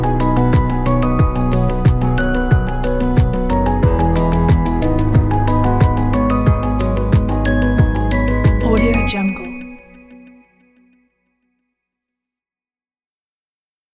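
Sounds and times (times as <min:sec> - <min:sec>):
ambient music: 0:00.0 - 0:10.9.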